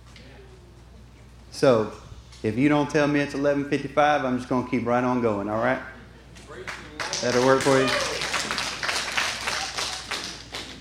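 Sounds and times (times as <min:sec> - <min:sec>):
speech: 0:01.5 - 0:05.9, 0:06.6 - 0:08.1
scattered clapping from a church audience during a sermon: 0:06.4 - 0:10.7.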